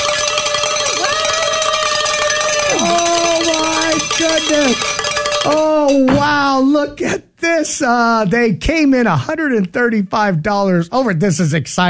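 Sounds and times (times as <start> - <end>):
bells rung in celebration: 0.0 - 6.2
speech: 4.4 - 11.8.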